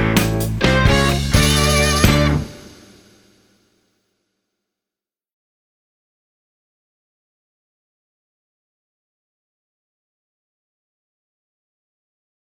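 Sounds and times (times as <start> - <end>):
recorder: 0.0 - 3.0.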